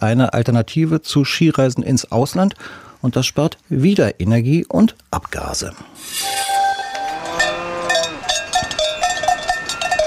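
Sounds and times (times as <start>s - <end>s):
speech: 0.0s - 6.6s
cowbells clanking: 6.1s - 10.0s.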